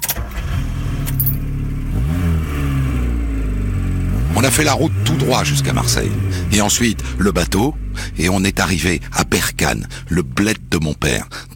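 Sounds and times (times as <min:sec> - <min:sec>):
Peugeot 104 car engine idling and revving: 0:00.0 - 0:11.5
metallic jingle: 0:01.1 - 0:01.4
speech: 0:04.4 - 0:11.5.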